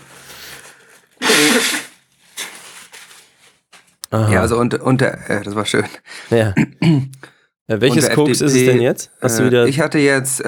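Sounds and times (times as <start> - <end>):
person blowing nose: 0.0 - 3.4
speech: 4.1 - 10.4.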